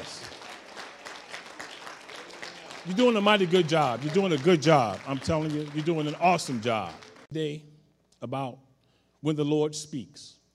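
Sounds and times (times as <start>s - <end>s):
audience hand clapping applause: 0.0s - 7.3s
speech: 2.8s - 8.6s, 9.2s - 10.4s.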